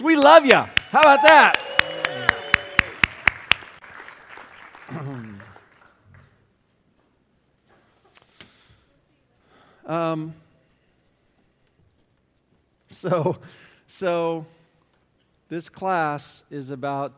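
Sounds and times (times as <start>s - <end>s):
speech: 0.0s - 2.0s, 9.9s - 10.4s, 13.0s - 14.6s, 15.5s - 17.1s
scattered audience applause: 0.0s - 6.3s.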